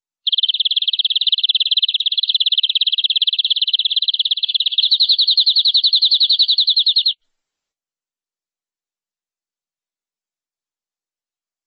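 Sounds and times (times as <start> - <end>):
canary trilling: 0.2 - 7.2.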